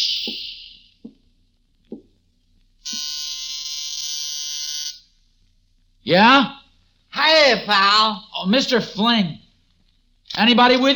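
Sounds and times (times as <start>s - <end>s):
doorbell buzzer ringing: 2.8s - 5.0s
speech: 6.1s - 6.6s, 7.3s - 9.4s, 10.4s - 10.9s.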